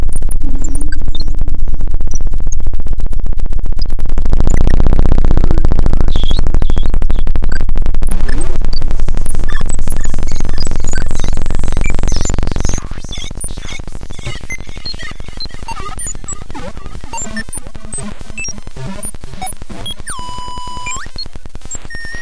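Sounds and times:
ambient noise glitch: 0.0 - 22.2.

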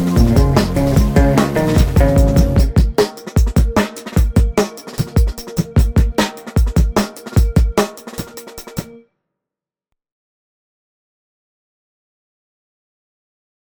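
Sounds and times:
bedroom beat: 0.0 - 8.9.

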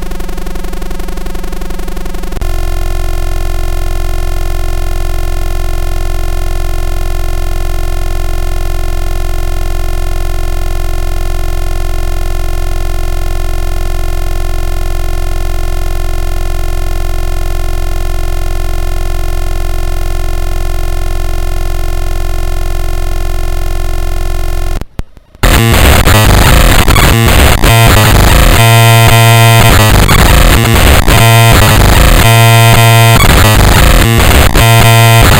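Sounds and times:
circuit bent Gameboy noise: 0.0 - 35.3
circuit bent Gameboy triangle wave tone: 0.0 - 35.3.

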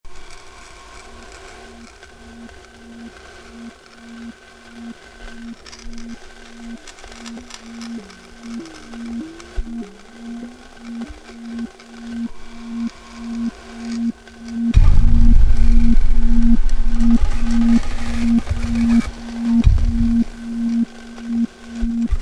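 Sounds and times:
cello: 12.2 - 22.2.

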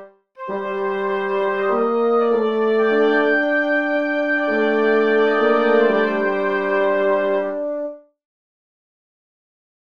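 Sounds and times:
bassoon tune: 0.0 - 8.2.

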